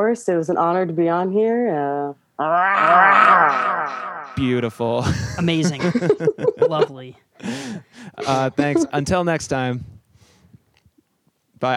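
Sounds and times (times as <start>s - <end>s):
speech: 0.0s - 9.9s, 11.6s - 11.7s
person imitating a panther roar: 2.4s - 4.4s
laughter: 4.4s - 9.1s.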